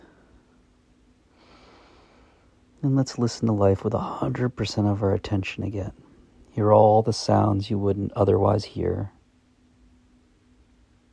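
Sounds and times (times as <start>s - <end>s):
deep breath during a guided relaxation exercise: 1.3s - 2.6s
speech: 2.8s - 6.0s, 6.6s - 9.2s.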